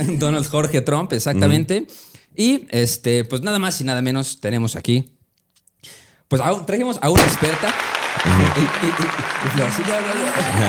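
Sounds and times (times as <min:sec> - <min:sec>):
speech: 0:00.0 - 0:05.2, 0:05.8 - 0:10.6
applause: 0:07.4 - 0:10.6.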